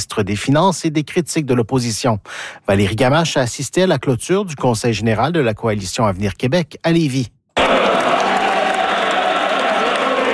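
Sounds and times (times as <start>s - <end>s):
speech: 0.0s - 7.4s
party supporters cheering and applauding at Coalition Avenir Québec general council in Lévis: 7.6s - 10.3s.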